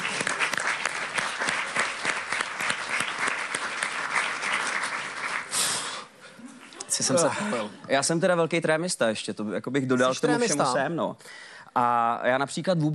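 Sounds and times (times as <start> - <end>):
audience applause: 0.0 - 6.0
speech: 7.0 - 12.9.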